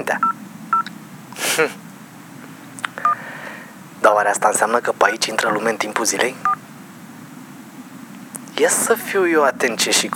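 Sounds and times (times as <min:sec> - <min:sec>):
low hum: 0:00.0 - 0:09.6
mobile phone alarm beeps: 0:00.2 - 0:00.9
speech: 0:01.6 - 0:01.8, 0:04.0 - 0:06.6, 0:08.6 - 0:10.1.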